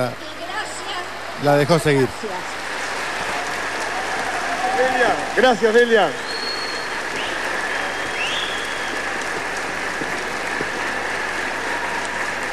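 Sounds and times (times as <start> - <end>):
speech: 0.0 - 0.4, 1.4 - 2.7, 4.8 - 6.2
audience applause: 0.0 - 12.5
faint whistle: 6.2 - 9.0.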